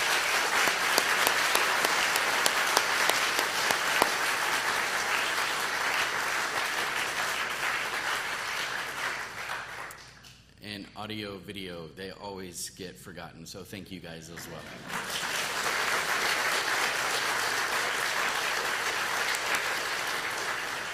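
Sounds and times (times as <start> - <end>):
audience applause: 0.0 - 10.0, 14.5 - 20.9
speech: 11.0 - 15.3.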